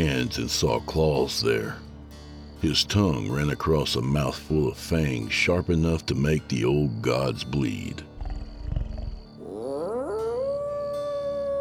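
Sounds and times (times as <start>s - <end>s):
speech: 0.0s - 1.8s, 2.6s - 8.1s
howling at the moon: 8.2s - 11.5s.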